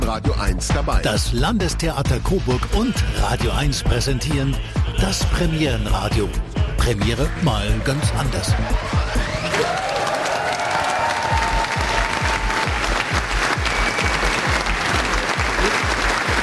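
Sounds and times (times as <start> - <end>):
speech: 0.1 - 9.9
thunderous theatre applause after the premiere at Landestheater Coburg: 8.0 - 16.4.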